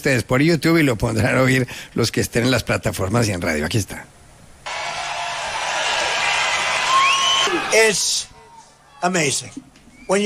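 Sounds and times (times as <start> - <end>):
speech: 0.0 - 4.2, 7.7 - 8.3, 9.0 - 10.2
rally crowd applauding and cheering: 4.7 - 8.6
high whistle: 6.5 - 7.8.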